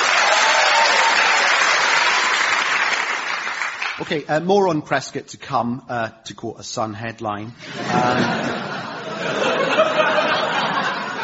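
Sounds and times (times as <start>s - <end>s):
studio audience applauding guests on a comedy panel show: 0.0s - 4.2s
speech: 4.0s - 8.6s, 9.2s - 10.0s
laughter: 7.6s - 11.2s.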